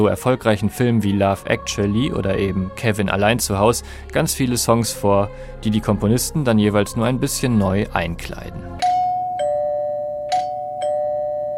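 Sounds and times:
speech: 0:00.0 - 0:08.9
doorbell ringing: 0:08.8 - 0:11.5.

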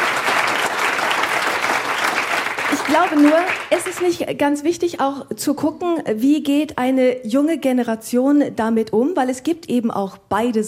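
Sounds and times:
audience applause: 0:00.0 - 0:04.2
speech: 0:02.9 - 0:10.6.

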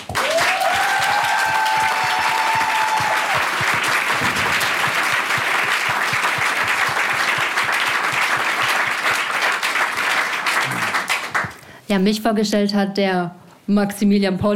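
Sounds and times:
audience applause: 0:00.0 - 0:11.6
speech: 0:11.9 - 0:14.5.

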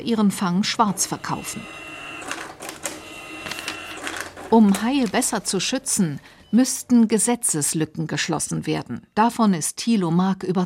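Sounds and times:
speech: 0:00.0 - 0:01.9, 0:04.5 - 0:10.6
receipt printer printing a catch receipt: 0:00.6 - 0:06.4.

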